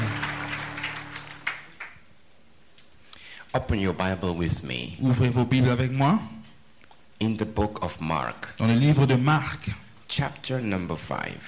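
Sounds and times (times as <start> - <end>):
audience applauding: 0.0 - 2.1
speech: 3.6 - 6.4, 7.2 - 11.4.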